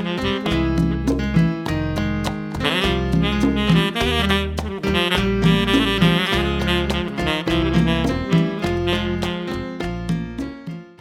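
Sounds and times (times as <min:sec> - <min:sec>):
salsa music medley: 0:00.0 - 0:10.9.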